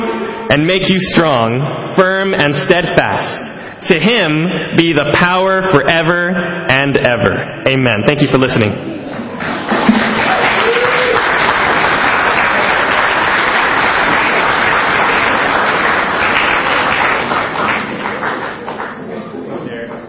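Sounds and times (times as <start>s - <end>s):
speech: 0.5s - 9.5s
audience applause: 9.3s - 20.0s.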